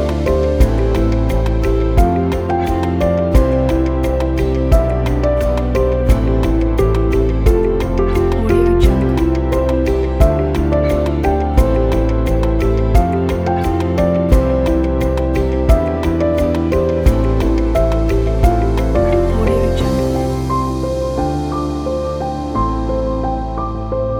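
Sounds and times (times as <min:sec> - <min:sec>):
relaxing corporate music: 0:00.0 - 0:24.1.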